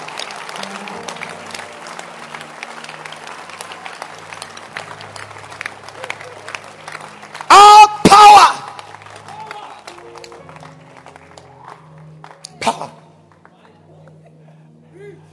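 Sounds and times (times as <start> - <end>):
church congregation applause: 0.0 - 14.2.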